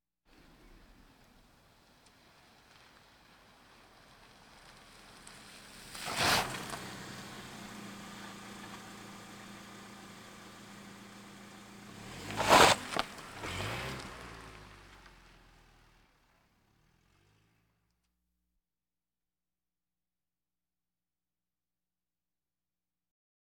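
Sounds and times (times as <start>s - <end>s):
various automobiles: 0.3s - 18.0s.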